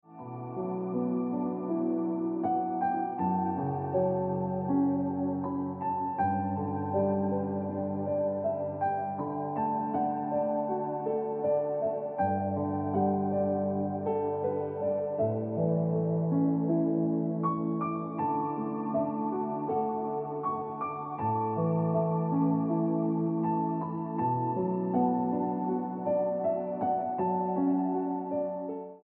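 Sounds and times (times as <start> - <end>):
piano ringtone music: 0.0 - 29.0.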